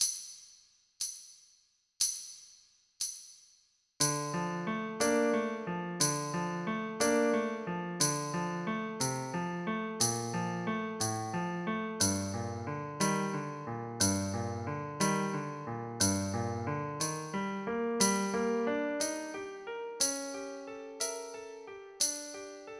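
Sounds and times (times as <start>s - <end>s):
slow piano study at 60: 4.0s - 22.7s.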